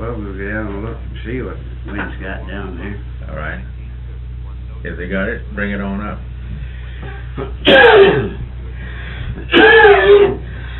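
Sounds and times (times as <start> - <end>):
speech: 0.1 - 3.8, 4.8 - 6.3, 7.0 - 8.4
heavy coughing fit: 7.0 - 8.4.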